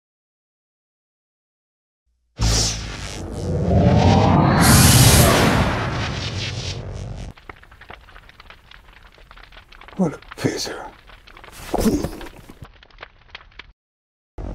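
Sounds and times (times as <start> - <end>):
faint crackle: 2.6 - 13.8
Star Trek starship engaging its warp drive: 3.2 - 6.8
speech: 10.0 - 10.9, 11.7 - 12.2.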